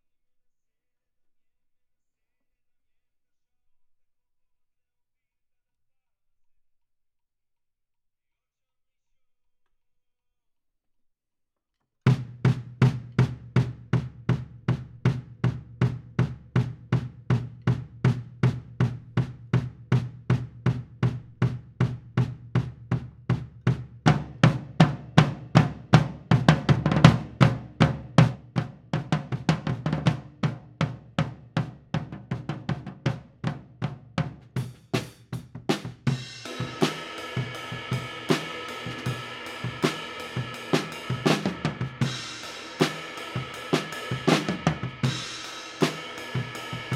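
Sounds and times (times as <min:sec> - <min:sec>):
drum kit: 0:12.1 - 0:46.9.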